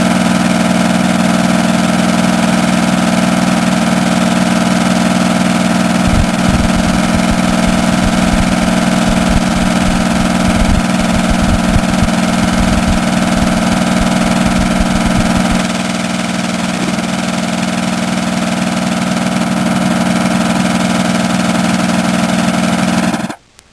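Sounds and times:
diesel generator: 0.0 - 23.4.

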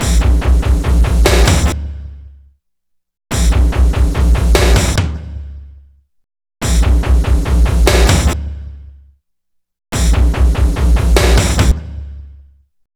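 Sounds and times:
drums: 0.0 - 2.2, 3.3 - 5.7, 6.6 - 8.8, 9.9 - 12.3.

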